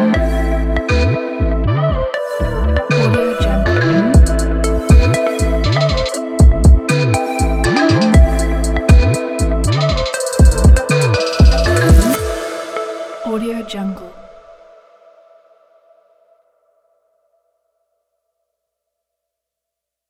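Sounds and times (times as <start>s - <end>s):
energetic hip hop music: 0.0s - 14.6s.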